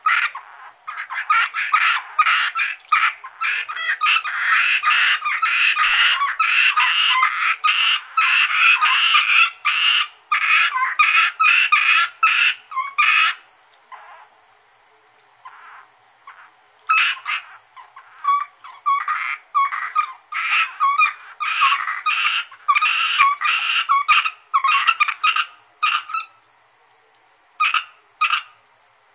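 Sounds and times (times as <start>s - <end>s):
Asian grass frog Rana limnocharis croaking in short raspy bursts: 0.0s - 14.6s, 15.4s - 26.6s, 27.6s - 28.7s.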